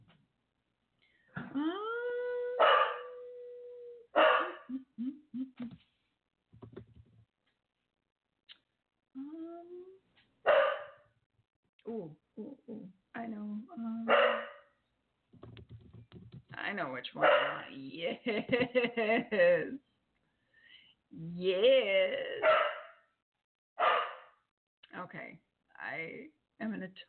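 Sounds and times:
speech: 1.6s - 1.8s, 4.7s - 6.9s, 11.9s - 14.5s, 16.1s - 19.9s, 21.1s - 22.7s, 25.0s - 27.0s
dog barking: 2.6s - 3.2s, 4.2s - 4.7s, 10.5s - 11.0s, 14.1s - 14.7s, 17.2s - 17.6s, 22.4s - 23.0s, 23.8s - 24.3s
dog yipping: 2.6s - 3.2s, 4.2s - 4.7s, 10.5s - 11.0s, 14.1s - 14.6s.

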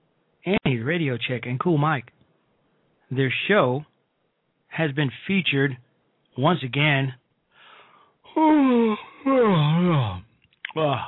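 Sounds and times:
speech: 0.4s - 2.2s, 3.1s - 3.9s, 4.7s - 5.8s, 6.4s - 7.2s, 8.4s - 11.0s
person yawning: 8.3s - 11.0s.

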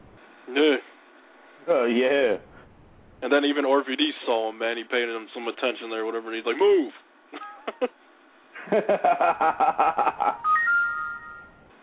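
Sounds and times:
speech: 0.5s - 0.9s, 1.7s - 2.5s, 3.2s - 8.0s, 8.7s - 10.5s
laughter: 8.6s - 10.6s
iPod electronic alert for an incoming Yahoo spam message: 10.4s - 11.7s.

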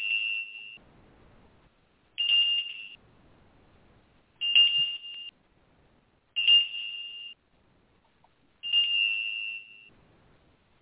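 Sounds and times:
ritual bell ringing: 2.2s - 3.0s, 4.4s - 5.3s, 6.4s - 7.4s, 8.6s - 9.9s.

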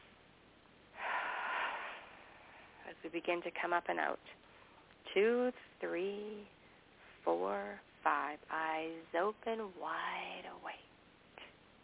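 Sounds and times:
deep inhalation through the nose: 1.0s - 2.8s
speech: 2.9s - 4.4s, 5.2s - 6.6s, 7.2s - 10.9s.

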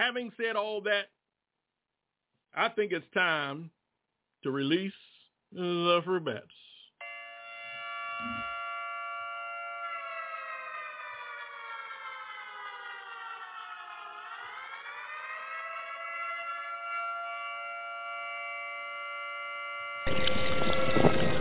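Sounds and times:
speech: 0.0s - 1.2s, 2.5s - 3.8s, 4.4s - 6.6s, 8.2s - 8.5s
alarm siren sound effect: 7.0s - 21.3s.

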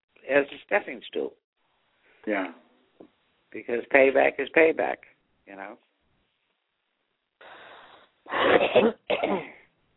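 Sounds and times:
speech: 0.3s - 1.4s, 2.2s - 5.9s, 8.3s - 9.6s
raspy wheezing intake of breath: 7.4s - 8.6s
harsh throaty coughs: 8.3s - 9.7s.

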